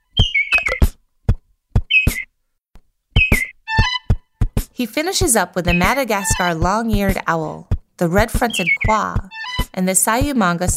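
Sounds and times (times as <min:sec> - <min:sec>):
lesser vasa parrot calling: 0:00.2 - 0:00.8, 0:01.9 - 0:02.2, 0:03.2 - 0:04.1, 0:08.5 - 0:09.7
speech: 0:04.8 - 0:10.7.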